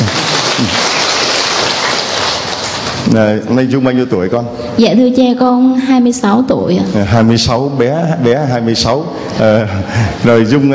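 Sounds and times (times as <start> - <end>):
crowd applause: 0.0 - 3.1
speech: 3.1 - 10.7.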